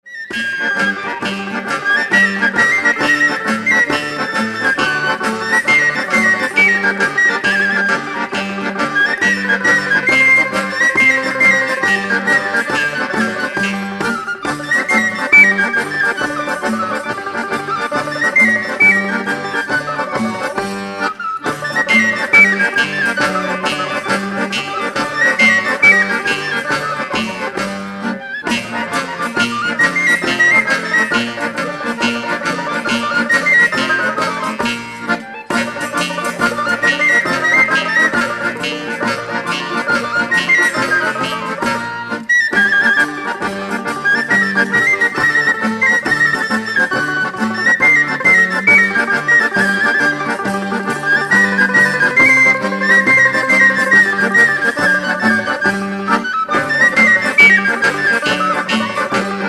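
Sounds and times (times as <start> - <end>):
Sicilian contradanza dance music: 0.3 - 59.4.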